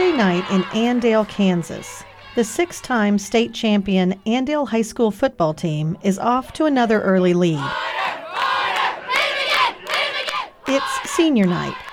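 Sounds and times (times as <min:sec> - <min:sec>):
football game crowd cheering: 0:00.0 - 0:03.6, 0:07.6 - 0:11.9
speech: 0:00.2 - 0:08.1, 0:10.7 - 0:11.9.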